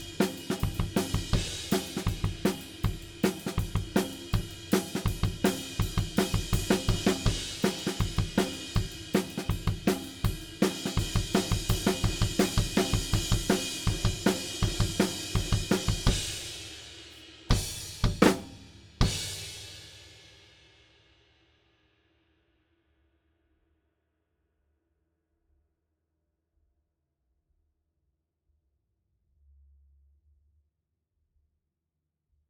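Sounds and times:
drums: 0.0s - 21.2s.

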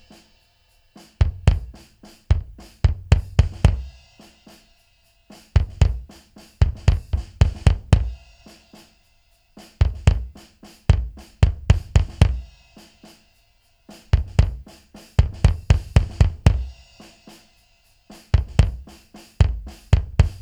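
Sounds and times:
drums: 0.0s - 20.4s
kick drum: 1.2s - 4.4s, 5.5s - 8.4s, 9.8s - 12.6s, 14.0s - 16.9s, 18.3s - 20.4s.

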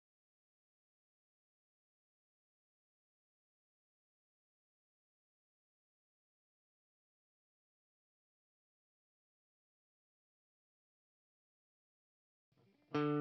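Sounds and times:
PRS guitar through Mesa MK 2 amplifier, clean tone: 12.6s - 13.2s.

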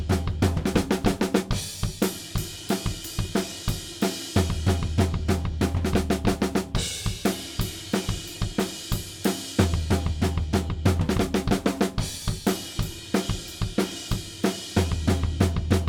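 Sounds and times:
drums: 0.0s - 15.8s.

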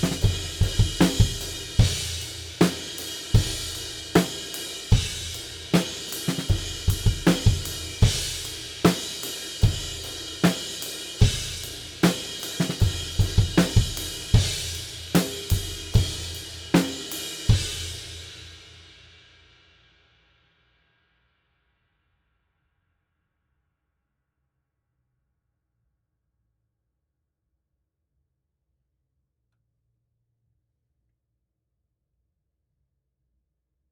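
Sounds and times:
drums: 0.0s - 20.2s.

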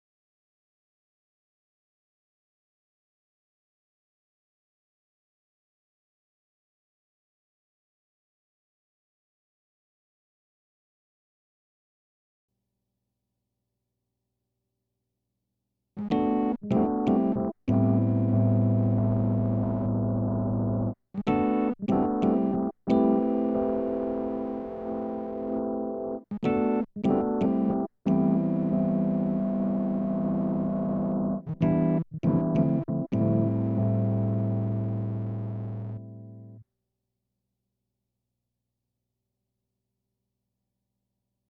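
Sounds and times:
keyboard playing: 16.0s - 36.6s.

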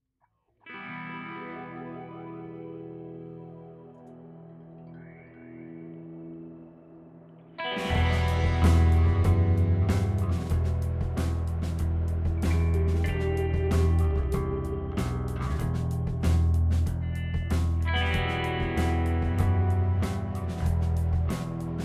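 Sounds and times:
guitars: 0.6s - 21.8s.

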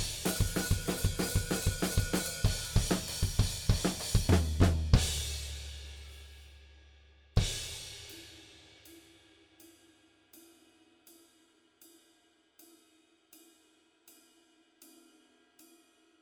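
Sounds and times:
drums: 0.0s - 6.6s, 7.4s - 9.2s.

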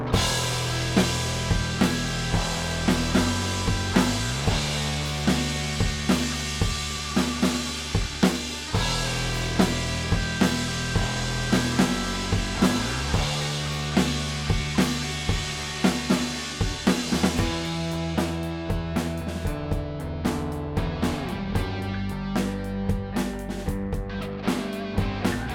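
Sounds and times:
drum stems: 0.1s - 25.5s.

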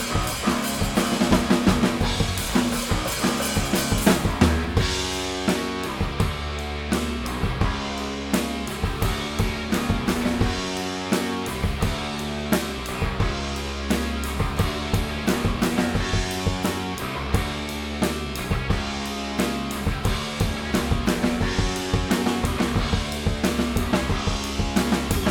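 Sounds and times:
drum stems: 0.0s - 25.2s.

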